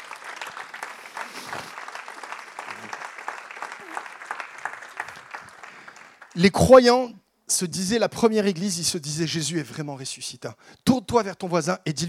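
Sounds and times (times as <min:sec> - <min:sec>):
audience applauding: 0:00.0 - 0:06.5
speech: 0:06.4 - 0:12.0.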